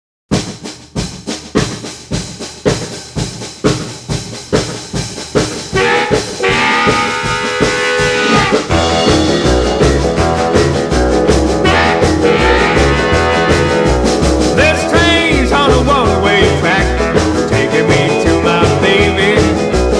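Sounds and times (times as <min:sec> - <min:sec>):
rockabilly boogie blues rock music: 0:00.3 - 0:19.9
harmonica: 0:05.8 - 0:09.1, 0:11.6 - 0:15.0.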